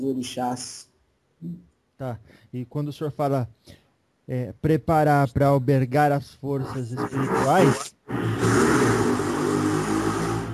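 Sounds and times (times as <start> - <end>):
speech: 0.0 - 8.6
trucks passing on a street: 8.2 - 10.5.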